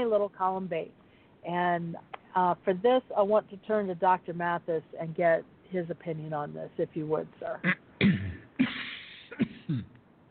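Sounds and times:
speech: 0.0 - 8.4
person coughing after lemonade went down the wrong way: 7.6 - 10.0.

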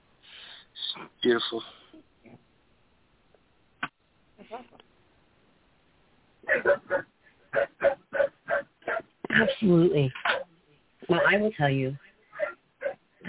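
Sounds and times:
speech: 1.0 - 2.4, 4.5 - 4.9, 6.5 - 8.0, 9.3 - 10.4, 11.1 - 12.1
dog grunting as it wakes: 6.4 - 9.1, 12.3 - 13.0.

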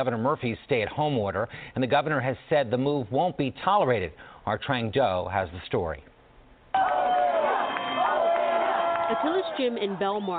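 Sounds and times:
speech: 0.0 - 6.1, 9.1 - 10.3
crowd cheering and whooping as a gym in Belmar, New Jersey reopens: 6.7 - 10.3
high shouted voices: 6.8 - 10.3.

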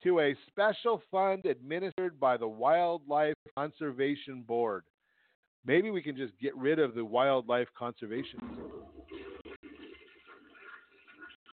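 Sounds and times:
speech: 0.0 - 4.9, 5.6 - 8.8
toilet flush sound effect: 8.2 - 11.5.

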